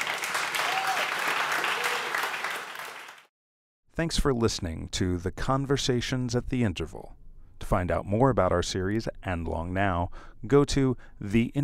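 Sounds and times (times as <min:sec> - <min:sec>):
audience applause: 0:00.0 - 0:03.3
speech: 0:04.0 - 0:11.6.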